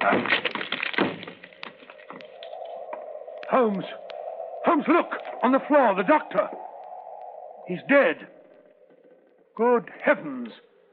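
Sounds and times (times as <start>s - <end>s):
locked door being broken in: 0.0s - 1.9s
speech: 3.5s - 4.0s, 4.7s - 6.7s, 7.7s - 8.4s, 9.6s - 10.7s.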